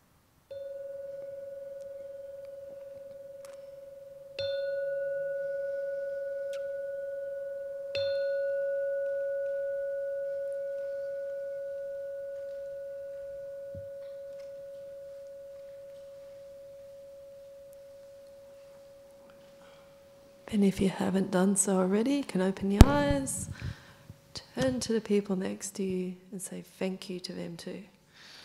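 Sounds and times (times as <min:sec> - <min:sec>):
meditation bell ringing: 0:00.5 - 0:20.5
speech: 0:20.5 - 0:23.8, 0:24.6 - 0:28.0.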